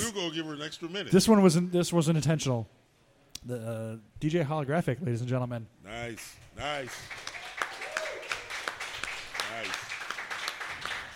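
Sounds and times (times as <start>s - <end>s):
speech: 0.0s - 2.8s, 3.4s - 7.3s
audience applause: 6.7s - 11.1s.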